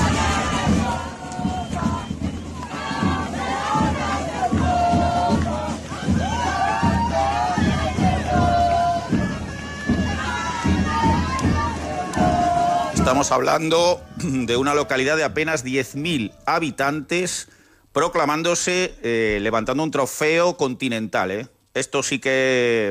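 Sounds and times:
crowd of fans cheering: 0:00.0 - 0:17.1
excited yells: 0:05.9 - 0:16.6
speech: 0:13.2 - 0:22.8.

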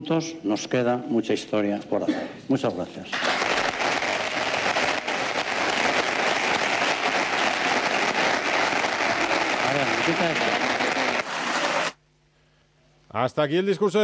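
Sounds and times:
speech: 0:00.0 - 0:03.5, 0:10.1 - 0:10.8, 0:13.2 - 0:14.0
audience applause and ovation: 0:03.2 - 0:12.0.

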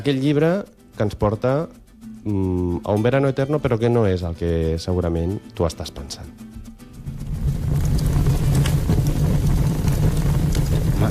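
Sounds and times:
speech: 0:00.0 - 0:06.5
firewood crackling in a fireplace: 0:06.6 - 0:11.0.

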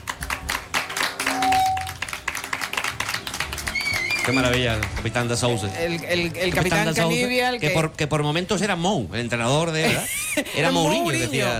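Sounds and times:
audience applause: 0:00.0 - 0:07.0
speech: 0:04.2 - 0:11.5.

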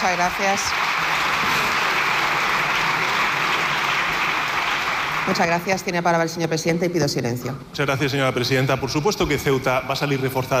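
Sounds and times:
speech: 0:00.0 - 0:01.7, 0:05.3 - 0:10.5
long applause in parliament chamber: 0:00.0 - 0:06.0.

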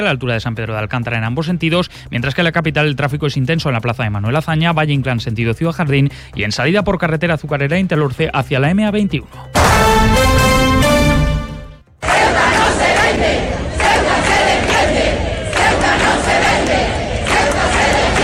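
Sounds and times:
speech: 0:00.0 - 0:10.4
crowd chanting at a street demonstration in support of Ceuta: 0:12.0 - 0:18.2.

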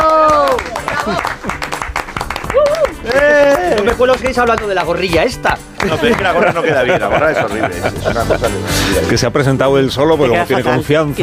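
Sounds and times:
applause: 0:00.0 - 0:06.6
laughter: 0:00.6 - 0:01.7, 0:05.8 - 0:09.2
speech: 0:03.9 - 0:11.2.

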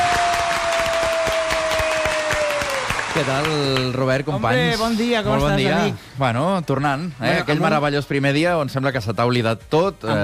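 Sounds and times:
studio audience applause: 0:00.0 - 0:04.5
speech: 0:03.2 - 0:10.2.

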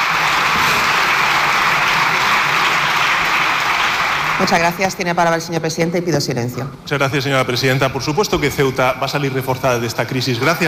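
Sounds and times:
long applause: 0:00.0 - 0:05.1
speech: 0:04.4 - 0:10.6.

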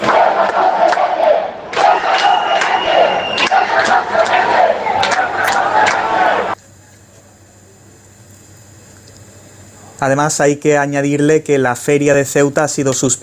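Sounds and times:
crowd of residents shouting: 0:00.0 - 0:06.6
speech: 0:10.0 - 0:13.2.

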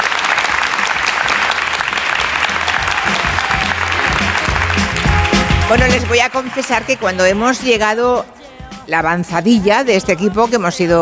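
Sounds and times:
audience applause: 0:00.0 - 0:07.7
speech: 0:05.7 - 0:10.9.

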